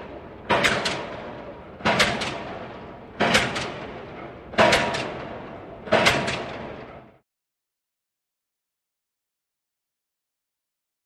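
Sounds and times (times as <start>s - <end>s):
pile driver rhythmic impacts: 0.0s - 7.2s.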